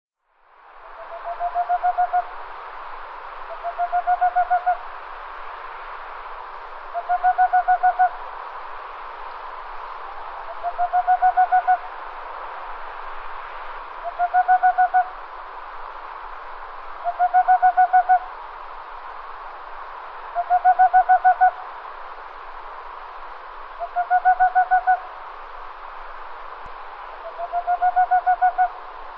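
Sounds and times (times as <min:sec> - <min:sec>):
background hiss: 0:00.2 - 0:29.1
bird hooting: 0:00.8 - 0:02.3, 0:03.5 - 0:04.8, 0:06.9 - 0:08.2, 0:10.4 - 0:11.9, 0:14.0 - 0:15.1, 0:17.0 - 0:18.3, 0:20.4 - 0:21.6, 0:23.8 - 0:25.1, 0:27.2 - 0:28.8.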